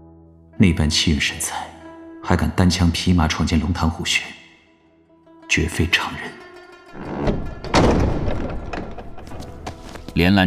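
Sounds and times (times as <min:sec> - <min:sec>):
speech: 0:00.6 - 0:04.4, 0:05.5 - 0:06.4, 0:10.2 - 0:10.4
wooden door of a pavilion's main room creaking open: 0:06.9 - 0:10.1
dull thump: 0:07.0 - 0:09.8.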